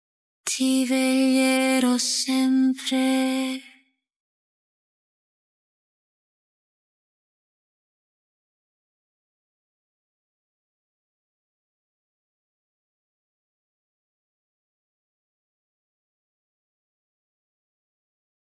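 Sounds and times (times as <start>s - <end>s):
lullaby: 0.5s - 3.8s.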